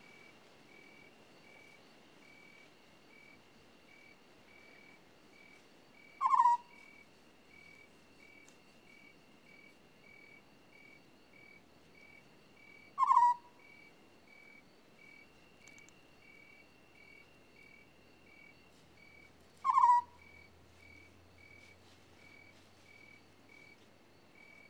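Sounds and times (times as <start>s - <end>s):
African scops owl rolling purrs: 6.2s - 6.9s, 12.7s - 13.8s, 19.6s - 20.4s.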